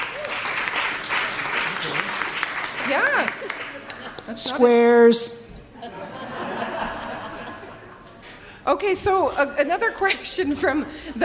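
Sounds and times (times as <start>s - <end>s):
audience applause as a noise poll: 0.0s - 4.4s
laughter: 3.5s - 4.7s, 5.6s - 8.4s
speech: 4.3s - 6.1s, 8.7s - 11.2s.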